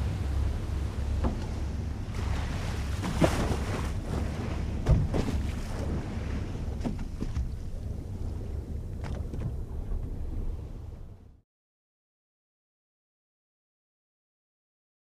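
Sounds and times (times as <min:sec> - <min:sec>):
Coast Guard cutter ship: 0:00.0 - 0:11.4.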